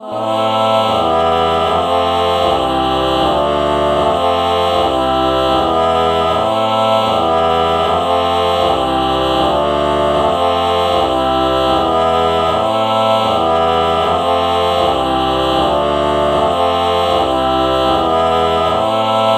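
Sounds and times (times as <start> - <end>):
morphing ah ah vocal chord: 0.0 - 19.3.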